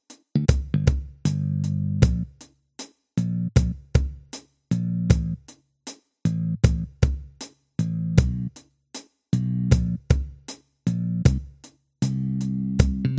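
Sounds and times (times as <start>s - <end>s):
bass tracks: 0.4s - 2.4s, 3.2s - 4.1s, 4.7s - 5.5s, 6.2s - 7.2s, 7.8s - 8.6s, 9.3s - 13.1s.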